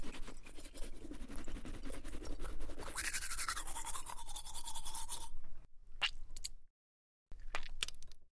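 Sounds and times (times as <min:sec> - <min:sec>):
toothbrush: 0:00.0 - 0:05.4.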